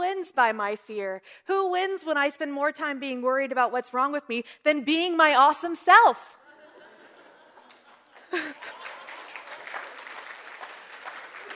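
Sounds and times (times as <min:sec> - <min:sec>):
speech: 0:00.2 - 0:06.4, 0:08.3 - 0:08.8
laughter: 0:06.4 - 0:10.4
audience clapping: 0:07.5 - 0:11.5.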